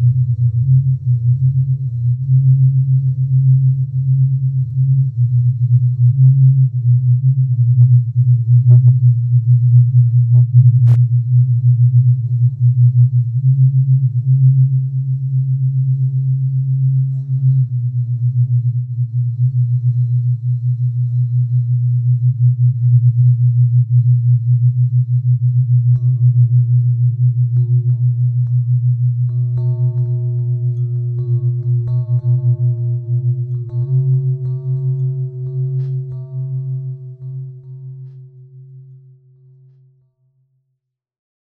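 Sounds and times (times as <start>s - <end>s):
drones in 10edo tuning: 0.0s - 38.9s
bells in 10edo tuning: 26.0s - 38.2s.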